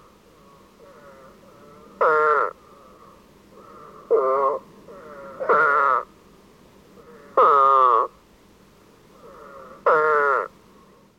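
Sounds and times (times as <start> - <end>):
eastern spadefoot buzzy calls: 2.0 - 2.6, 3.7 - 6.1, 7.3 - 8.2, 9.2 - 10.5.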